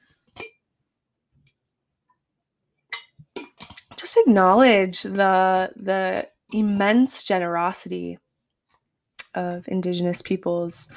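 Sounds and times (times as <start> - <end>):
glass clinking: 0.3 - 0.6
speech: 4.0 - 8.2, 9.3 - 10.9.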